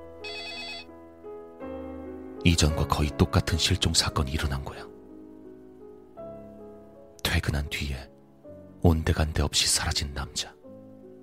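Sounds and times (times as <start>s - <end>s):
telephone bell ringing: 0.2s - 0.9s
speech: 2.4s - 4.9s, 7.5s - 8.1s, 8.8s - 10.6s.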